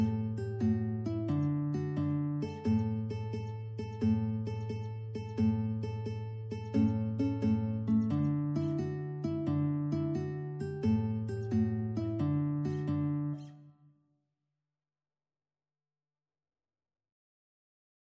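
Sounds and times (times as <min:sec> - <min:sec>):
guitar duet: 0:00.0 - 0:13.8.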